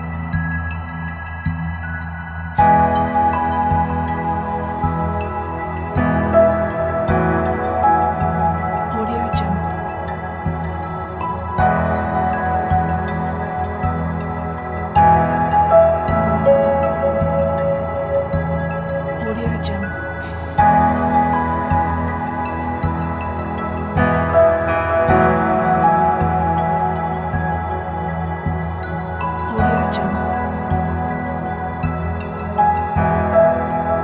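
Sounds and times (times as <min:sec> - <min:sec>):
documentary soundscape piano: 0:00.0 - 0:34.0.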